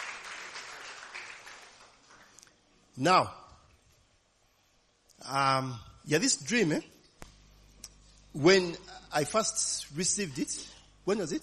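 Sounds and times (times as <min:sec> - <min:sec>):
audience applause: 0:00.0 - 0:02.4
speech: 0:03.0 - 0:03.4, 0:05.3 - 0:07.0, 0:08.4 - 0:11.4.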